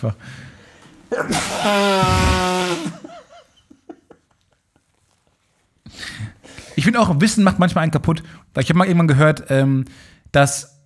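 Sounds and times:
speech: 0:00.0 - 0:00.5, 0:01.1 - 0:02.5, 0:06.8 - 0:10.7
person sneezing: 0:01.1 - 0:03.1.

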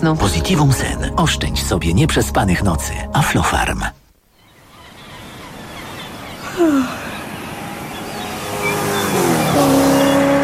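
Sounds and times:
speech: 0:00.0 - 0:04.0, 0:06.6 - 0:07.0
brief squeal: 0:07.5 - 0:10.4
car engine revving as it drives in: 0:07.6 - 0:10.4.

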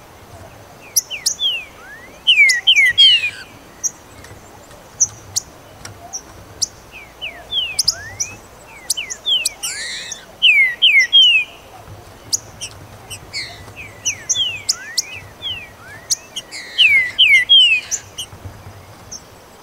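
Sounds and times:
green-winged saltator singing: 0:01.1 - 0:03.5, 0:07.2 - 0:11.6, 0:13.3 - 0:18.2.

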